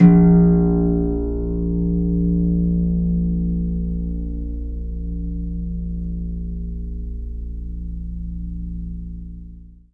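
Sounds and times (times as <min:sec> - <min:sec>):
harp suspended chord on C2: 0:00.0 - 0:06.3.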